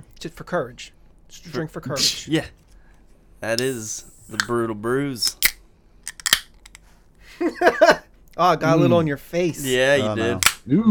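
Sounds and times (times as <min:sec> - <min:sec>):
speech: 0:00.2 - 0:02.6, 0:03.4 - 0:05.4, 0:07.4 - 0:10.8
drink can cracking open: 0:03.6 - 0:04.5, 0:05.2 - 0:06.8, 0:10.4 - 0:10.6.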